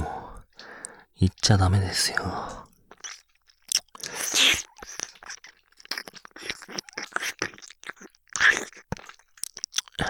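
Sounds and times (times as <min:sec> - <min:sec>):
speech: 0:01.2 - 0:02.6
wet ear-licking mouth sounds: 0:02.6 - 0:10.0.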